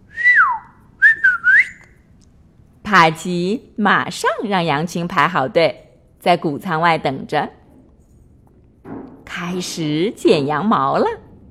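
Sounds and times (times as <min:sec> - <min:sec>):
shepherd's whistle: 0:00.1 - 0:02.0
speech: 0:02.9 - 0:07.6, 0:09.4 - 0:11.2.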